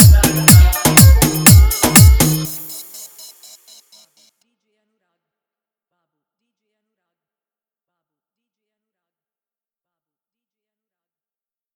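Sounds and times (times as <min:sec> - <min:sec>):
electro mix: 0:00.0 - 0:03.9.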